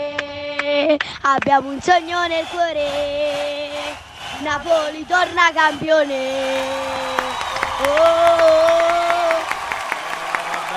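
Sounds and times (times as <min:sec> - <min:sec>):
speech: 0:00.9 - 0:03.6, 0:04.4 - 0:07.0, 0:07.8 - 0:08.8
crowd cheering: 0:01.6 - 0:10.7
crowd applauding: 0:06.0 - 0:10.7.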